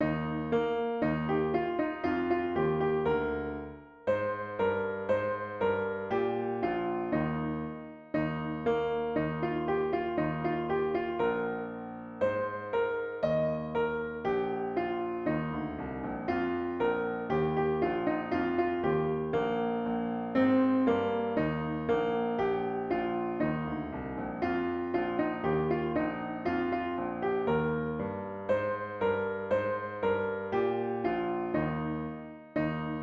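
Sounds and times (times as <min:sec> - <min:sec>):
piano: 0:00.0 - 0:33.0.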